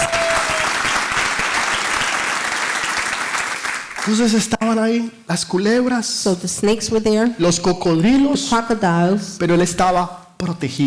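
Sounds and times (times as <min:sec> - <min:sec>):
audience applause: 0:00.0 - 0:04.3
speech: 0:04.0 - 0:10.8.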